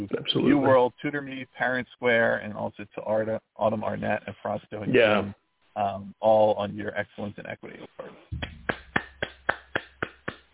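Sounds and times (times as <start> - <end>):
speech: 0.0 - 8.5
steady rhythmic applause: 8.3 - 10.5.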